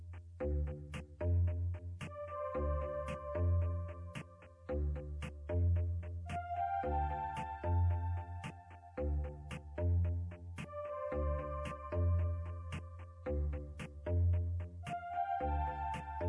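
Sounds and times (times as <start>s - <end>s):
game music loop: 0.5s - 16.2s.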